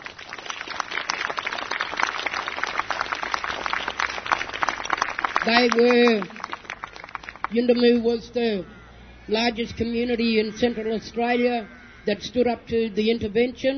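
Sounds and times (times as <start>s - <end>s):
audience clapping: 0.0s - 7.9s
speech: 5.4s - 6.4s, 7.5s - 13.7s
person calling out: 9.3s - 13.7s.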